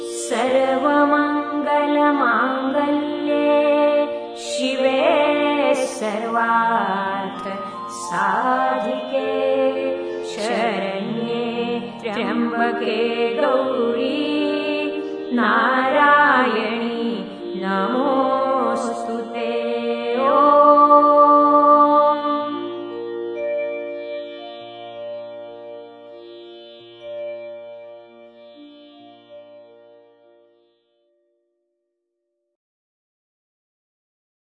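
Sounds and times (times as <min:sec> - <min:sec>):
meditation mantra chanting: 0:00.0 - 0:22.7.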